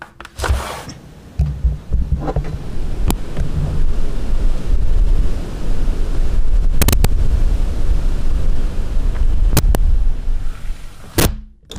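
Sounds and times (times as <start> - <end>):
strong wind buffeting a microphone: 1.0 - 11.3.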